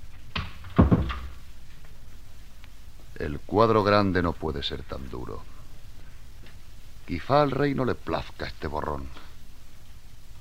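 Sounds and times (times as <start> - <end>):
door closing thuds: 0.3 - 1.4
speech: 3.2 - 5.6, 7.1 - 9.3.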